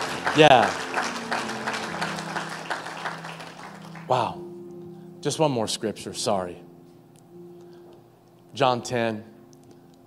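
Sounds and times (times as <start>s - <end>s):
audience clapping: 0.0s - 4.4s
speech: 0.4s - 1.4s, 4.1s - 4.4s, 5.2s - 6.7s, 8.6s - 9.3s.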